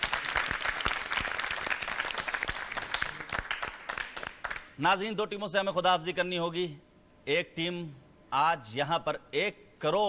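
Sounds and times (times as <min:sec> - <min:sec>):
crowd applauding loudly: 0:00.0 - 0:04.7
speech: 0:04.8 - 0:10.0.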